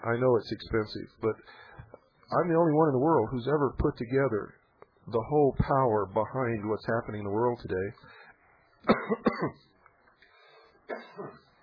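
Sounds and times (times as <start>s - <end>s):
speech: 0.0s - 8.2s, 8.8s - 9.7s, 10.9s - 11.4s
person coughing after something went down the wrong pipe: 8.8s - 9.6s, 10.9s - 11.6s
throat clearing: 8.8s - 9.6s, 10.9s - 11.6s.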